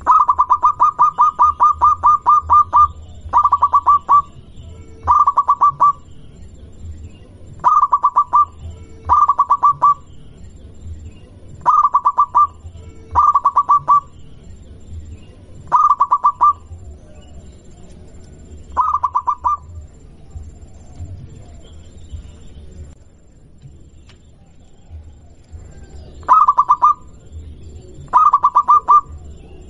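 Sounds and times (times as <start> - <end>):
local-type zebra dove song: 0.0 - 23.0, 23.6 - 29.6.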